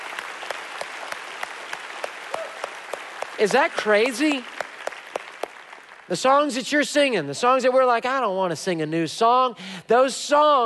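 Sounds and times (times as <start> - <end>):
crowd applause and noise: 0.0 - 6.6
audience clapping in unison: 0.0 - 6.8
speech: 3.4 - 4.6, 6.1 - 10.6.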